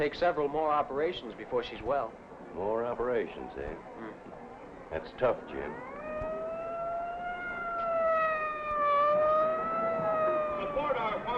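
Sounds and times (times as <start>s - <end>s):
speech: 0.0s - 5.9s
fire engine siren: 5.5s - 11.3s.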